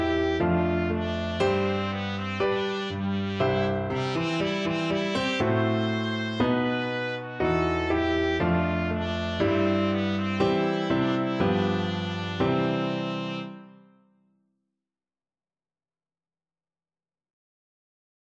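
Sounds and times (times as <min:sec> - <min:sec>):
trumpet playing a wedding march: 0:00.0 - 0:13.7.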